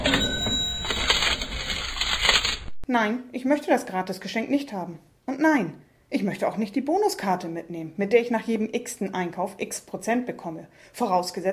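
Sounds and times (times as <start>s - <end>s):
thin high steady tone: 0.0s - 1.8s
supermarket checkout clatter of clinks, rattles and rustles in Germany: 0.0s - 2.6s
speech: 2.9s - 11.5s.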